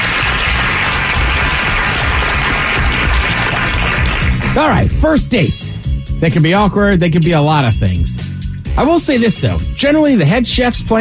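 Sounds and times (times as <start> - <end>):
crowd applause and cheering: 0.0 - 4.9
speech: 4.6 - 8.2, 8.8 - 10.9.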